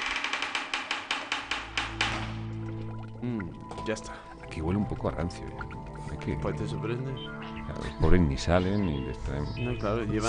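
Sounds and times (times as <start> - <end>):
knocking on a door: 0.0 - 2.5
speech: 3.3 - 10.2.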